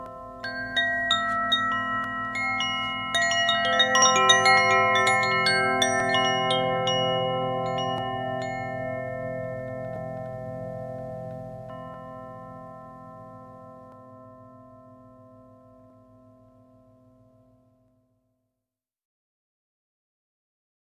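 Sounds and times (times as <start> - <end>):
Koshi chime Terra ringing: 0.0 - 15.5.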